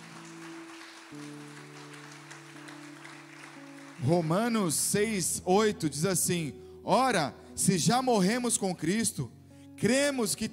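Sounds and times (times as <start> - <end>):
audience applause: 0.0 - 5.1
speech: 1.1 - 1.5, 4.0 - 10.5.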